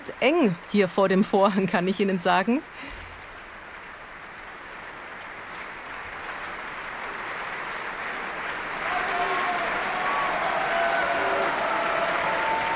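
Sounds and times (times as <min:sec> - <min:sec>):
speech: 0:00.0 - 0:03.0
opera audience ovation and applause at Bayreuth: 0:03.1 - 0:12.7.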